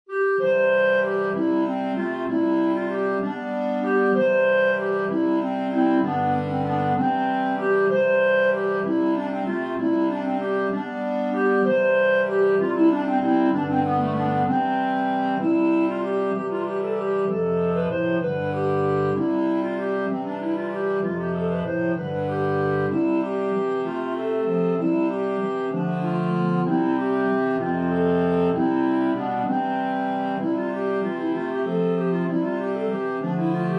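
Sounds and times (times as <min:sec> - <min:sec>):
clarinet: 0:00.1 - 0:33.7.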